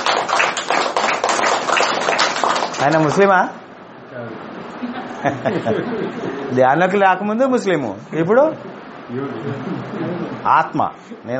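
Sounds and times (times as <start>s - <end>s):
audience clapping at a meditation gathering: 0.0s - 3.3s
speech: 2.8s - 11.3s
laughter: 4.8s - 6.6s.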